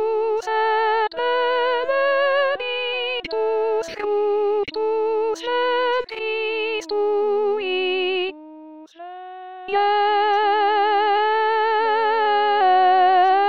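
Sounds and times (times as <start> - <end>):
soprano voice singing: 0.0 - 13.4.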